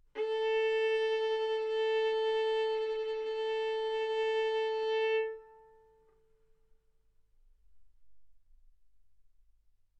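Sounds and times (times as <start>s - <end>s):
violin bowed mezzo-forte on the A string, A4 and B4: 0.0s - 6.0s.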